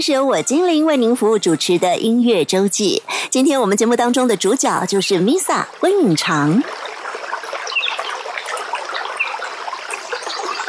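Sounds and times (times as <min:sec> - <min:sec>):
speech: 0:00.0 - 0:06.8
babbling stream: 0:00.0 - 0:10.6
birds chirping: 0:06.7 - 0:10.6.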